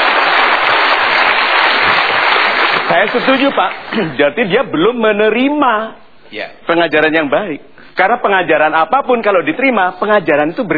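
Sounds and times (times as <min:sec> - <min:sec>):
audience applause at a motivational talk show: 0:00.0 - 0:04.0
speech: 0:03.0 - 0:10.7.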